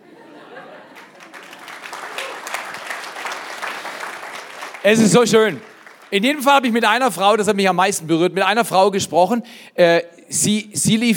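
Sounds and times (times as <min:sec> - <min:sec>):
laughter: 0:00.0 - 0:02.6
audience clapping: 0:00.8 - 0:07.2
speech: 0:04.8 - 0:11.1.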